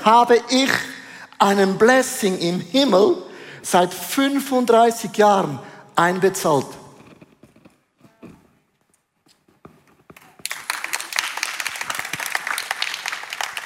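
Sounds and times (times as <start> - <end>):
speech: 0.0 - 6.8
applause: 10.2 - 13.6.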